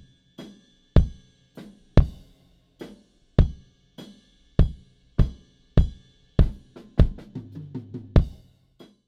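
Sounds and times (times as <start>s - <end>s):
kick drum: 1.0s - 1.2s, 2.0s - 2.3s, 3.4s - 3.6s, 4.6s - 7.3s, 8.2s - 8.5s.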